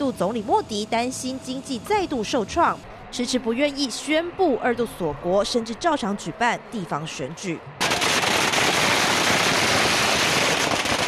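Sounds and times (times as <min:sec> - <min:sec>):
speech: 0:00.1 - 0:07.8
firecrackers set off in celebration: 0:07.8 - 0:11.0.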